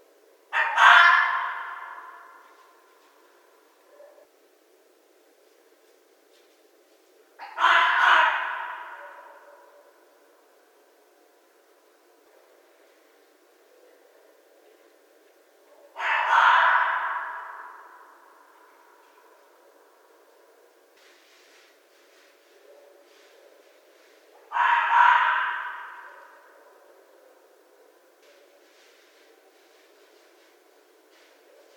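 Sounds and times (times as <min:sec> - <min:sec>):
red fox calling: 0:00.5 - 0:03.3, 0:07.4 - 0:10.1, 0:15.7 - 0:30.3.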